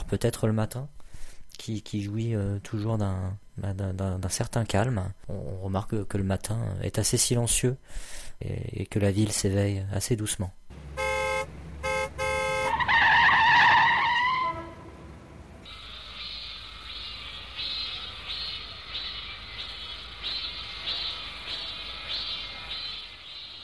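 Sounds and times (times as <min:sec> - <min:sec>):
speech: 0:00.1 - 0:01.0, 0:01.6 - 0:10.6
car horns: 0:10.7 - 0:15.5
city street traffic: 0:10.7 - 0:23.1.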